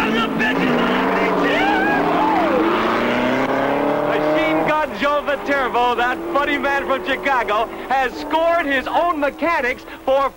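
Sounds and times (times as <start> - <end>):
race car engines roaring as three racers tear onto an open highway: 0.0 - 10.3
speech: 5.7 - 10.3.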